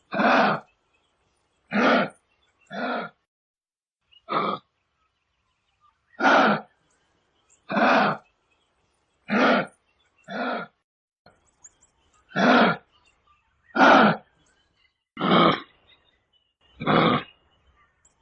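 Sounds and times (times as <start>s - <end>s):
kangaroo: 0.0s - 0.7s, 1.7s - 3.2s, 4.2s - 4.7s, 6.2s - 6.8s, 7.6s - 8.2s, 9.3s - 10.8s, 12.2s - 12.9s, 13.7s - 14.3s, 16.8s - 18.2s.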